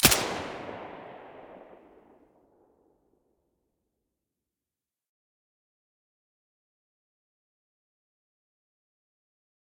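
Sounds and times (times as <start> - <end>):
silenced gunshot: 0.0 - 2.2.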